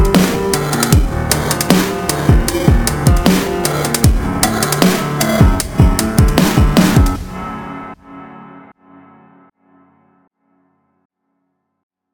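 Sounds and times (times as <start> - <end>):
phonk music: 0.0 - 9.3.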